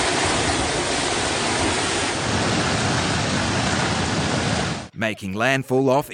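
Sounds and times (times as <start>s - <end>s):
heavy rain: 0.0s - 4.9s
typhoon wind: 0.0s - 4.9s
speech: 5.0s - 6.1s.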